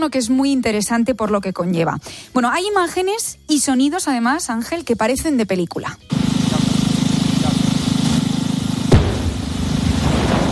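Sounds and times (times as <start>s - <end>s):
speech: 0.0s - 6.4s
low mechanical rumble: 6.1s - 10.5s
controlled explosion boom: 8.9s - 10.5s.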